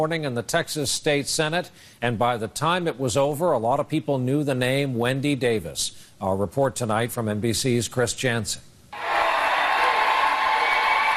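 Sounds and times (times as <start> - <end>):
speech: 0.0 - 9.1
raucous crowd cheering in the Texas State House after a legislative session: 9.0 - 11.1.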